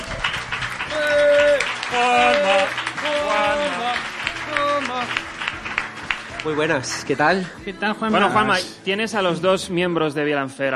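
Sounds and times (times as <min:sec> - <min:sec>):
audience applause: 0:00.0 - 0:07.3
speech: 0:06.4 - 0:10.7.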